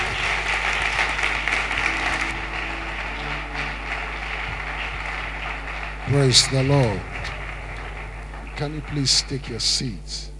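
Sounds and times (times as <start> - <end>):
audience clap offering: 0.0 - 9.9
low electrical hum: 0.0 - 10.3
speech: 6.1 - 7.1, 8.6 - 10.3.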